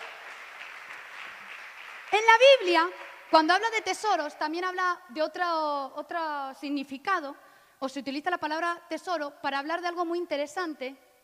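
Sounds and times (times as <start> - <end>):
audience applauding: 0.0 - 4.0
speech: 2.1 - 11.1.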